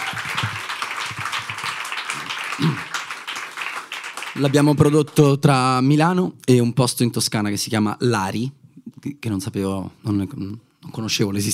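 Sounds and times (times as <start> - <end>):
audience applause: 0.0 - 5.4
speech: 4.4 - 11.5.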